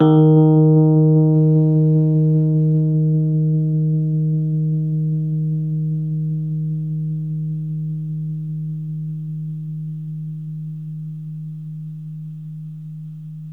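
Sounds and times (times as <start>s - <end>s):
Rhodes electric piano note D sharp 2 on the left: 0.0s - 8.9s.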